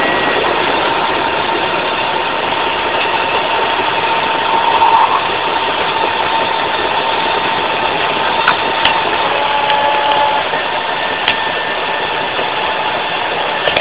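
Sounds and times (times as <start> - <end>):
pump: 0.0 - 13.7.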